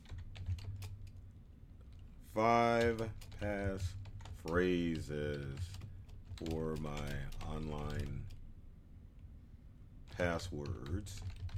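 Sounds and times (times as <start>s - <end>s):
rapid keystrokes on a computer keyboard typing a prompt into Copilot: 0.0s - 1.2s, 1.9s - 8.4s, 10.1s - 11.5s
faint low hum: 0.0s - 11.5s
speech: 2.3s - 5.8s, 6.4s - 8.3s, 10.2s - 11.5s.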